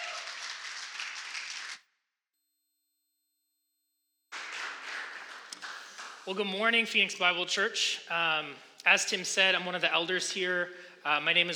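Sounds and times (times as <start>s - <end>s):
audience applause: 0.0s - 1.8s, 4.3s - 6.3s
speech: 6.3s - 11.5s.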